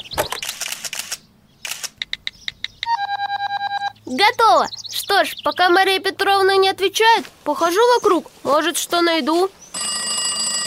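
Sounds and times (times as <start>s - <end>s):
camera shutter clicking: 0.1s - 2.1s
short high electronic beeps: 2.8s - 4.0s
speech: 4.1s - 9.6s.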